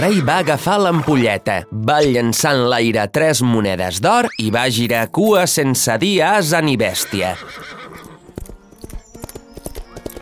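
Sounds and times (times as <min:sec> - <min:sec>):
speech: 0:00.0 - 0:08.1
horse hooves galloping: 0:06.8 - 0:10.2.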